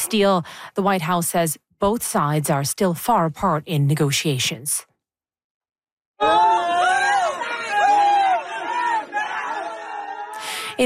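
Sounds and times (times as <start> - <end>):
speech: 0.1 - 4.9, 6.2 - 6.6
rescuers cheering after finding people in a cave in central Laos: 6.2 - 10.5.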